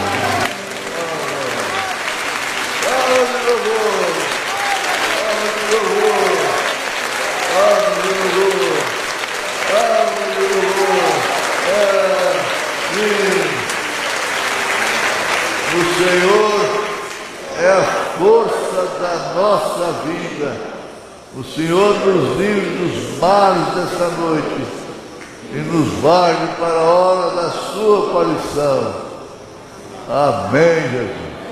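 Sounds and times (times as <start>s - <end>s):
crowd clapping: 0.0s - 20.2s
speech: 19.4s - 20.6s, 21.3s - 24.8s, 25.5s - 29.0s, 30.1s - 31.3s.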